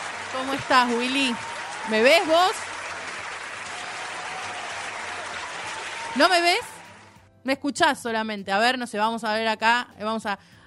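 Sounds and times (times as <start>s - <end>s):
audience applause for guest: 0.0s - 7.2s
speech: 0.4s - 2.7s, 6.2s - 6.7s, 7.4s - 10.6s.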